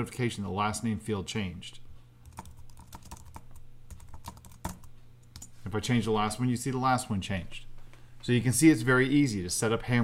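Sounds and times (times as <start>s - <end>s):
speech: 0.0s - 1.8s, 5.7s - 10.0s
typing on a computer keyboard: 2.2s - 5.5s.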